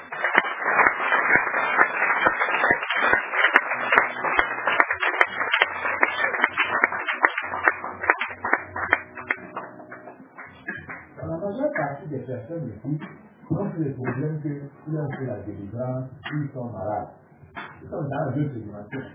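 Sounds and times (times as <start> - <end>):
audience applause: 0.0 - 11.7
speech: 12.5 - 13.1, 13.8 - 17.2, 17.8 - 19.1.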